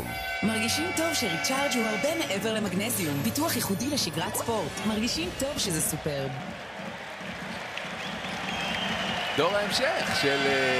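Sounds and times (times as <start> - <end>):
speech: 0.4 - 6.6, 9.4 - 10.7
crowd applauding the Maccabi Tel Aviv youth team showing a cup: 4.1 - 10.7.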